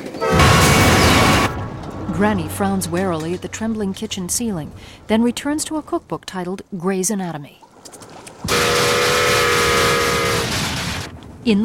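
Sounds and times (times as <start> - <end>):
model steam train barreling along track: 0.0 - 6.8, 8.5 - 11.6
speech: 2.2 - 8.6, 11.4 - 11.6.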